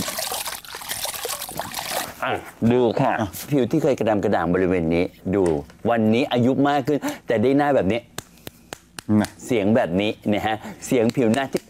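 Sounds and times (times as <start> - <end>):
water splashing while someone washes their face: 0.0 - 2.2
speech: 2.2 - 8.1, 9.1 - 11.6.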